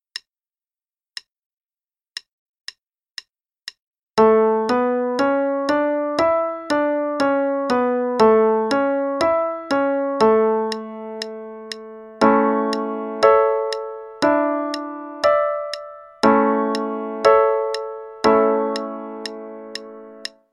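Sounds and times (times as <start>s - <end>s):
music in A major at 120 bpm: 4.2s - 20.5s.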